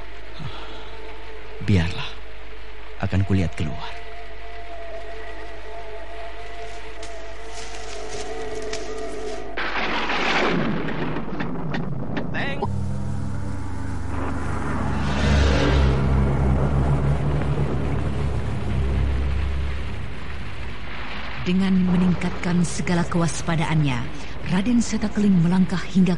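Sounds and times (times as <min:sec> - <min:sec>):
howling wind: 0:00.0 - 0:26.1
speech: 0:01.6 - 0:02.2, 0:03.0 - 0:04.0, 0:21.5 - 0:26.1
storm thunder: 0:09.6 - 0:24.2.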